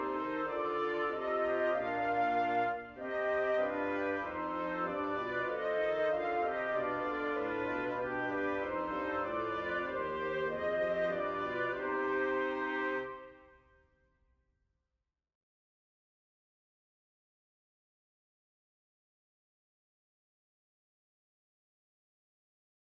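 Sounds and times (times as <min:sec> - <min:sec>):
woodwind quartet playing a little song: 0:00.0 - 0:13.4.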